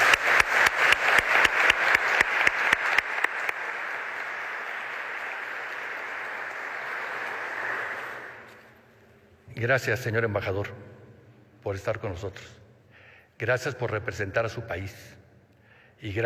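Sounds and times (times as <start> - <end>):
audience applause: 0.0 - 8.7
speech: 9.6 - 11.0, 11.6 - 12.6, 13.4 - 15.2, 16.0 - 16.2.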